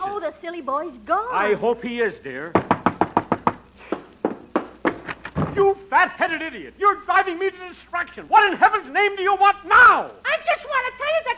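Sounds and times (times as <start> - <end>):
speech: 0.3 - 2.8, 5.6 - 11.3
knocking on a door: 2.5 - 3.6, 4.2 - 5.6.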